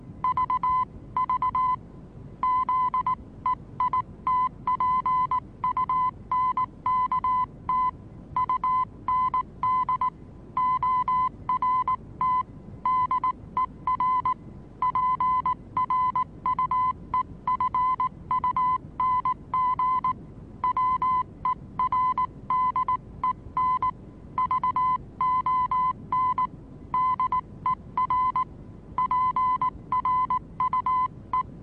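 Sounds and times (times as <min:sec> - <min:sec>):
Morse code: 0:00.2 - 0:01.8, 0:02.4 - 0:31.5.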